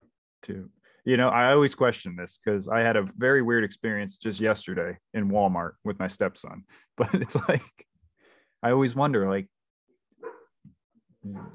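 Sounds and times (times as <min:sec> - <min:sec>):
speech: 0:00.5 - 0:07.9, 0:08.6 - 0:09.6, 0:11.2 - 0:11.5
faint dog barks: 0:10.2 - 0:10.5, 0:11.2 - 0:11.5.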